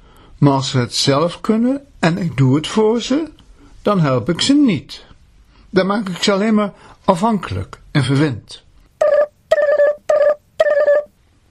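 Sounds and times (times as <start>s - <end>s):
speech: 0.4s - 5.1s, 5.7s - 8.6s
telephone ringing with buzzing metallic trill: 9.0s - 11.1s.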